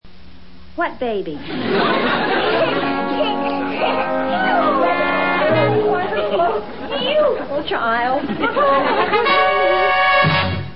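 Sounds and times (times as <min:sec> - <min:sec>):
laughter: 0:01.4 - 0:10.1
music: 0:02.4 - 0:06.7, 0:08.3 - 0:10.7.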